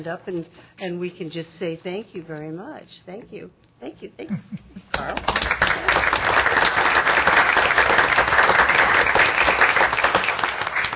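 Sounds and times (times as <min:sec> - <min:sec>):
speech: 0:00.0 - 0:06.3
audience applauding: 0:05.0 - 0:10.9.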